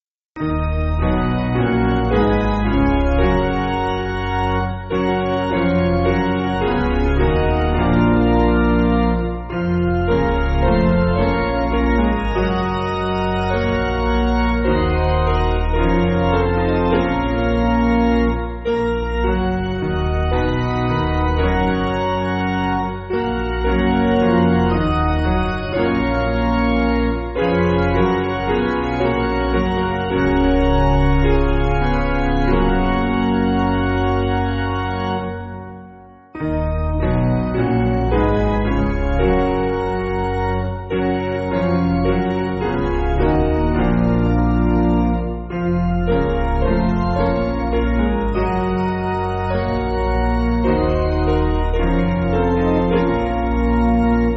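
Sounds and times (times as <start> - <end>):
piano backing music for churches: 0.4 - 54.3.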